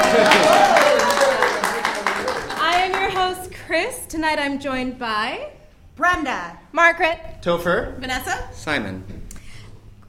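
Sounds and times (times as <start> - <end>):
voices and cheers: 0.0 - 2.4
audience clapping: 0.0 - 3.4
speech: 4.2 - 9.2.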